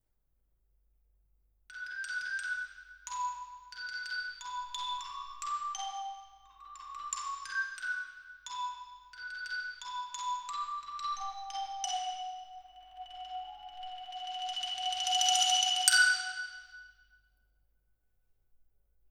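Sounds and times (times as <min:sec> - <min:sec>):
xylophone: 0:02.1 - 0:16.7.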